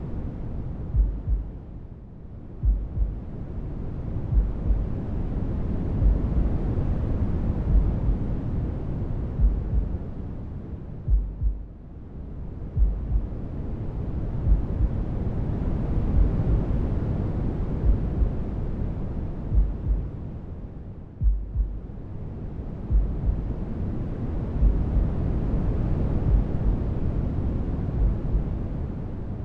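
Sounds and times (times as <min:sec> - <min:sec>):
noise: 0:00.0 - 0:29.4
heartbeat: 0:00.9 - 0:01.6, 0:02.6 - 0:03.3, 0:04.3 - 0:04.9, 0:06.0 - 0:06.5, 0:07.6 - 0:08.2, 0:09.4 - 0:10.0, 0:11.0 - 0:11.8, 0:12.7 - 0:13.4, 0:14.4 - 0:15.0, 0:16.1 - 0:16.7, 0:17.8 - 0:18.4, 0:19.5 - 0:20.1, 0:21.2 - 0:21.9, 0:22.9 - 0:23.6, 0:24.6 - 0:25.1, 0:26.2 - 0:26.8.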